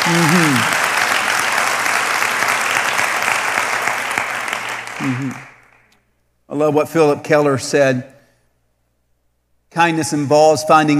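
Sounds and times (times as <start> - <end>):
voice calling out: 0.0 - 0.7, 5.0 - 5.5
audience applause: 0.0 - 5.8
speech: 0.1 - 0.8, 5.0 - 5.5, 6.5 - 8.1, 9.7 - 10.9.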